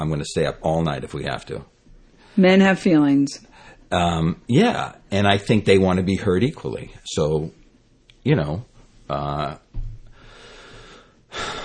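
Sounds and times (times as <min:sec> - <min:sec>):
speech: 0:00.0 - 0:01.8, 0:02.4 - 0:07.6, 0:08.2 - 0:09.6
long deep breath: 0:10.1 - 0:11.6.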